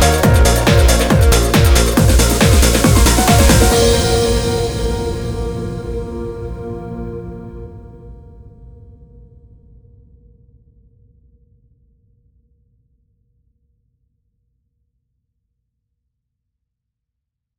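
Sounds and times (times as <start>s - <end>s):
music loop: 0.0s - 8.1s.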